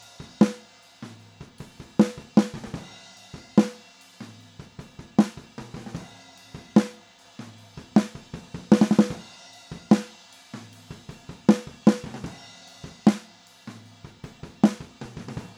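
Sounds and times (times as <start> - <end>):
snare drum recorded with a microphone: 0.0 - 15.5.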